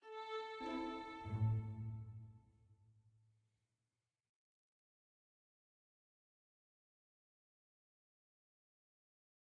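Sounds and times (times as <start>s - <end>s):
soft mysterious music ending: 0.4s - 2.3s.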